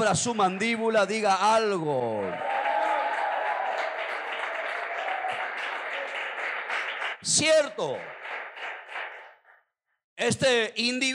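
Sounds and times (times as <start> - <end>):
speech: 0.0 - 2.6, 7.2 - 8.2, 10.2 - 11.1
crowd applause: 2.2 - 9.4.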